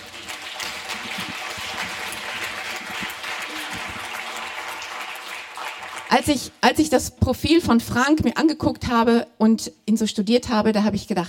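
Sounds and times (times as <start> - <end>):
audience applause: 0.0 - 6.4
speech: 6.1 - 11.2.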